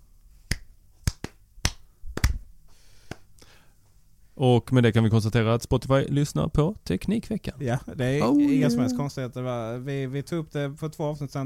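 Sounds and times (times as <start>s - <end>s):
slow uneven hand claps: 0.5s - 2.4s, 3.0s - 3.3s
speech: 4.4s - 11.4s.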